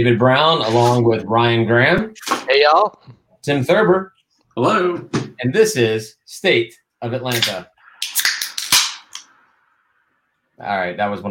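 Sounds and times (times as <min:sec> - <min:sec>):
speech: 0:00.0 - 0:08.3, 0:10.6 - 0:11.2
beer cans cracking open: 0:07.3 - 0:09.2.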